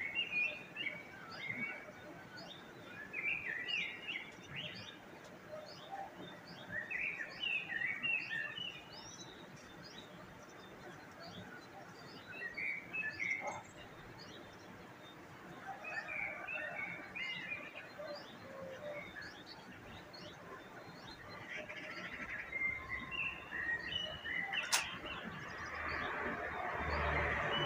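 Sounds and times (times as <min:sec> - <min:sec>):
birds chirping and tweeting: 0:00.0 - 0:27.6
sharp click: 0:24.6 - 0:25.0.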